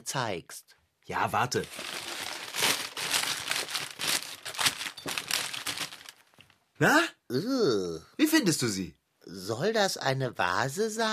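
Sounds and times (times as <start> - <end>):
speech: 0.0 - 2.0, 6.8 - 11.1
crumpled newspaper being unwrapped: 1.5 - 6.6.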